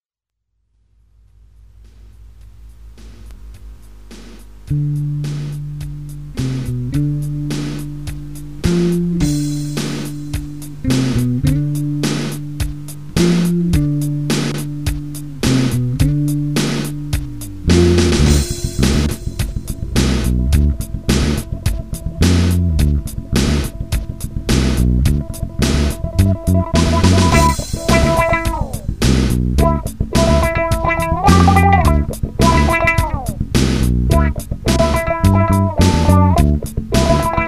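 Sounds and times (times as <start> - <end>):
funk music: 2.4 - 37.4.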